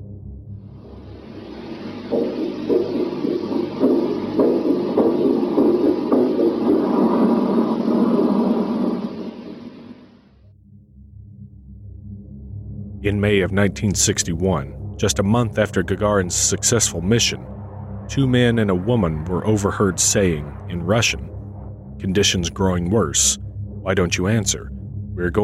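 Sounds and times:
failing heartbeat: 0.0 - 25.4
rumble: 0.0 - 25.4
heavy static: 0.8 - 10.3, 15.1 - 21.3
speech: 13.1 - 17.5, 18.1 - 21.3, 22.0 - 25.4.

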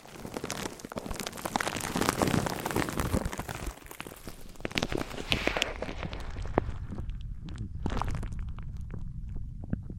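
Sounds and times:
materials handled and rubbed against each other: 0.0 - 9.9
low rumble: 5.8 - 9.9.

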